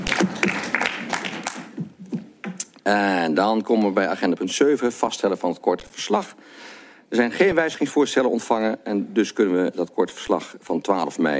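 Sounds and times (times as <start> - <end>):
council members applauding: 0.0 - 2.2
speech: 2.9 - 11.3.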